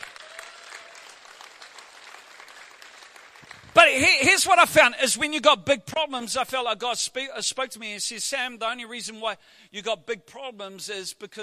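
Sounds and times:
audience clapping in praise: 0.0s - 4.3s
speech: 3.5s - 11.4s.

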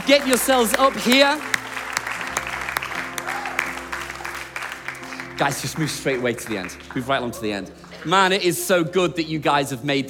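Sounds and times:
church audience applause: 0.0s - 8.5s
speech: 0.1s - 1.6s, 5.4s - 10.0s.

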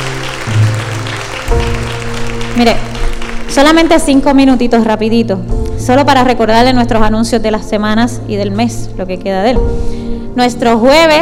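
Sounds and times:
audience applause: 0.0s - 3.9s
sustained low keyboard chords: 0.0s - 11.2s
speech: 2.6s - 11.2s.

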